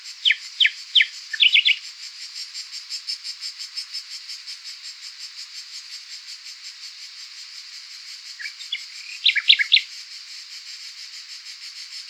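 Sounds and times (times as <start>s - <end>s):
Luscinia megarhynchos nightingale call with hesitant syllables in Southern Tuscany: 0.0s - 1.9s, 8.4s - 9.9s
background noise from cicadas in Southern Tuscany: 0.0s - 12.0s.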